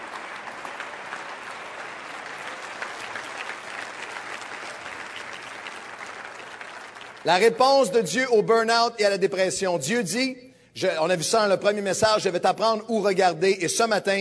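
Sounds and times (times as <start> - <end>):
audience applauding: 0.0 - 7.9
speech: 7.2 - 14.1.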